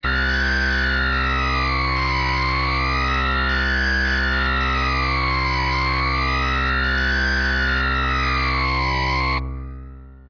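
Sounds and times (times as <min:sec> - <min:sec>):
distorted guitar: 0:00.0 - 0:10.2.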